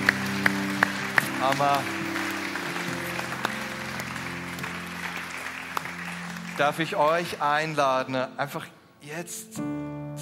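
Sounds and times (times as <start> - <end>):
audience applause: 0.0 - 7.8
speech: 1.4 - 2.0, 6.6 - 9.8.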